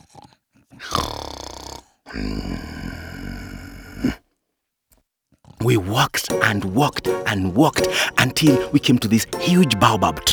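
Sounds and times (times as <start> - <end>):
loud snoring: 0.8 - 4.2
speech: 5.6 - 10.3.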